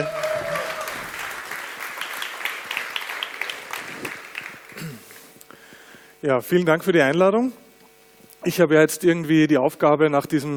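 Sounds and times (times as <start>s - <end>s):
audience applause: 0.0s - 5.3s
speech: 6.2s - 7.6s, 8.4s - 10.5s.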